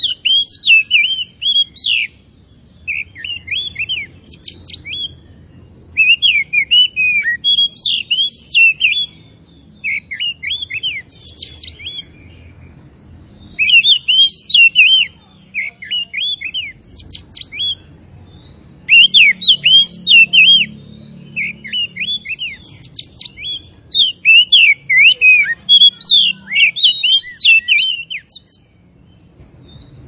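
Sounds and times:
Oriental magpie-robin singing whistled and chirping phrases: 0.0 - 30.0.

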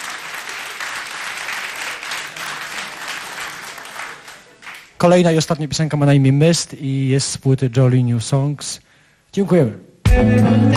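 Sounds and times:
audience applause after a band's song: 0.0 - 5.0
speech: 5.0 - 10.7.

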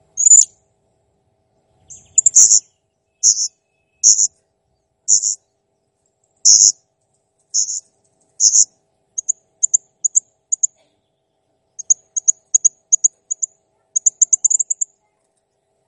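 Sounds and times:
blue-crowned hanging parrot chirps and squeaky trills: 0.2 - 0.5, 1.9 - 4.3, 5.1 - 5.4, 6.4 - 6.8, 7.5 - 10.7, 11.8 - 14.9.

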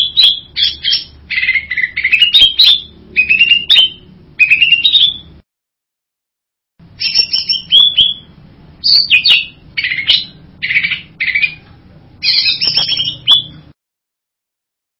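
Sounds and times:
bird buzzy whistled song: 0.0 - 5.4, 6.9 - 11.6, 12.2 - 13.8.

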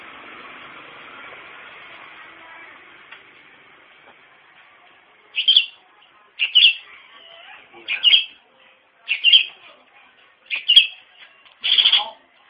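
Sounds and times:
Long-tailed shrike singing lively: 5.4 - 5.8, 6.4 - 6.9, 7.8 - 8.4, 9.1 - 9.6, 10.5 - 11.0, 11.6 - 12.2.

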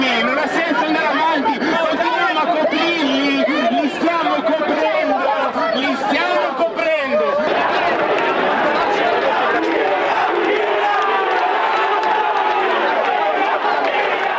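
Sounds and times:
laughter: 0.0 - 14.3
protesters shouting at demonstration: 0.0 - 14.3.

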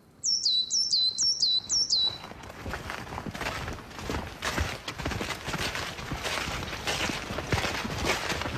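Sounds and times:
coal tit singing: 0.2 - 2.2
footsteps of people walking into a forest crunching: 2.0 - 8.5.

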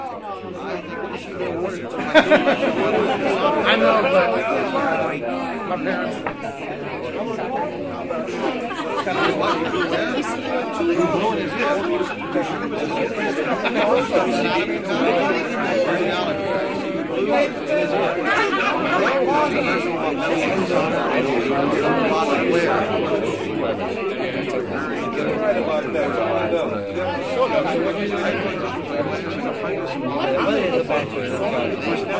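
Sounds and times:
people chatting at a party: 0.0 - 32.1
people laughing loudly or giggling: 1.3 - 32.1.

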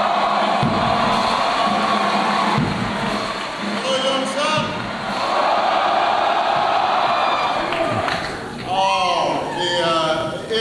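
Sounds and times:
audience applause and cheering: 0.0 - 9.8.

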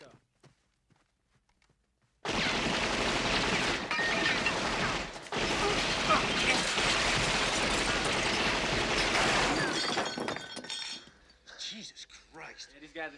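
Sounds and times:
machine gun fire: 2.3 - 9.6.

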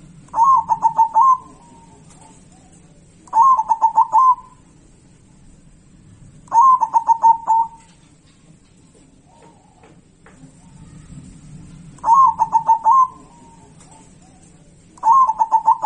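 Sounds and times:
zebra dove singing pulsed coos: 0.3 - 4.8, 6.5 - 8.0, 12.0 - 15.8.

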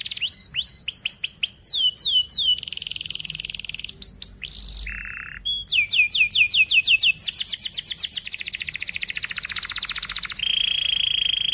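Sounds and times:
canary whistled song: 0.0 - 11.5.

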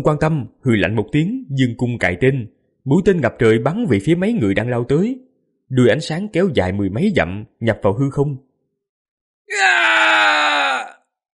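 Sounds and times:
speech: 0.0 - 8.5
man screaming in agony: 9.5 - 11.1.

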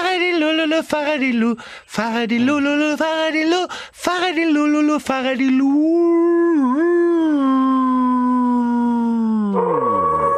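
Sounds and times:
speech: 0.8 - 7.9
wolf howling: 6.1 - 10.3.

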